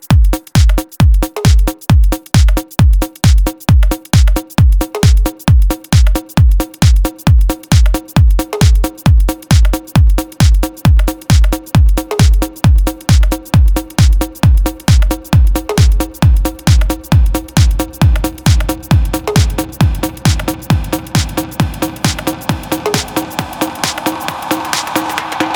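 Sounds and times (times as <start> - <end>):
funky beat: 0.0 - 25.5.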